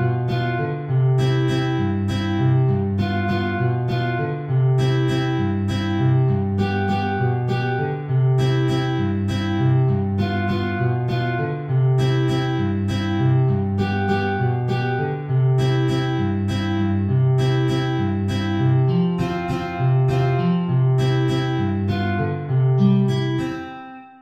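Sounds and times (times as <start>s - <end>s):
guitar playing in C major: 0.0s - 24.2s.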